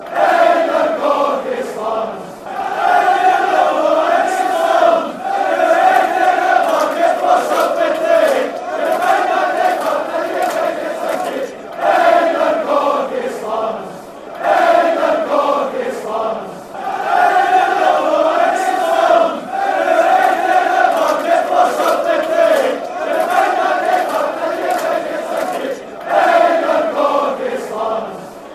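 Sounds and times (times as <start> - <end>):
fans chanting: 0.0 - 28.5.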